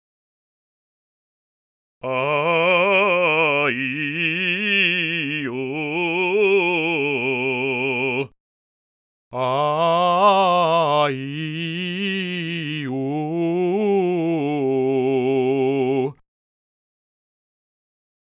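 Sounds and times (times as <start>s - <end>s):
person singing: 2.0s - 8.3s, 9.3s - 16.2s.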